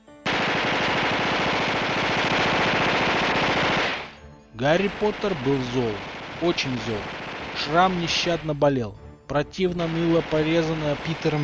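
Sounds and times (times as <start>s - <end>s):
submachine gun firing: 0.2s - 4.2s, 5.0s - 8.5s, 9.9s - 11.4s
speech: 4.6s - 11.4s.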